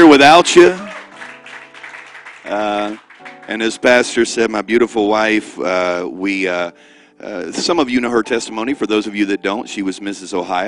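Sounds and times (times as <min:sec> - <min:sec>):
speech: 0:00.2 - 0:00.8, 0:02.5 - 0:10.6
audience applause: 0:00.6 - 0:03.8.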